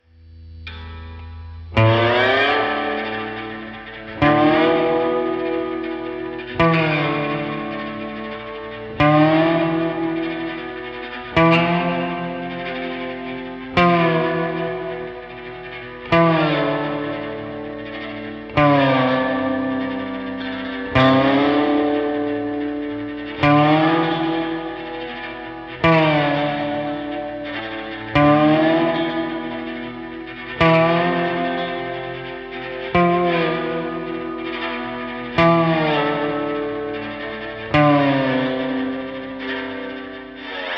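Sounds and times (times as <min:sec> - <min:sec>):
slide guitar loop: 0:00.0 - 0:40.7.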